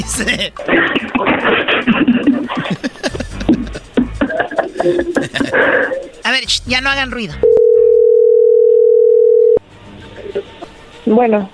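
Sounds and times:
laughter: 0.0 - 6.2
speech: 0.1 - 2.9, 4.8 - 7.6, 11.1 - 11.5
telephone ringing tone while placing call: 7.4 - 9.6.

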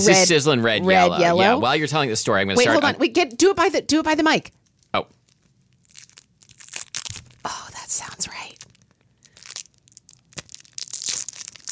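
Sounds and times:
speech: 0.0 - 5.2
crinkly plastic rustling of a fruit roll-up: 4.5 - 11.7
sticky peeling of a fruit roll-up from its backing: 4.6 - 7.8, 8.4 - 11.7.

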